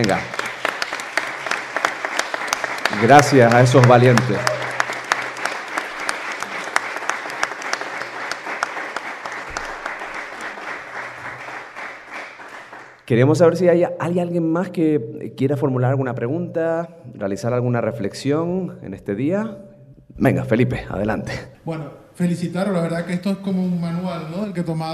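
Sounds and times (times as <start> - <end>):
speech: 0.0 - 0.4, 2.9 - 4.5, 13.1 - 24.9
audience applause: 0.0 - 13.1.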